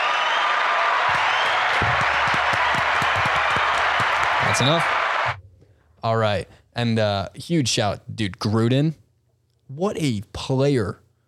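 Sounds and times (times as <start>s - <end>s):
clapping: 0.0s - 5.4s
speech: 4.6s - 5.0s, 6.0s - 9.0s, 9.7s - 11.0s.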